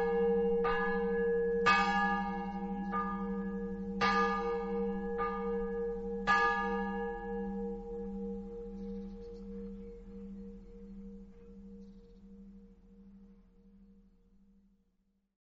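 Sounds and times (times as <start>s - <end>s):
bells ringing: 0.0s - 11.3s.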